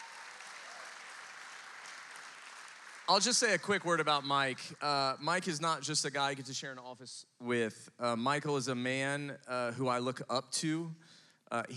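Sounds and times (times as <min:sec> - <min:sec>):
audience applause welcoming a speaker: 0:00.0 - 0:04.6
speech: 0:03.1 - 0:11.7.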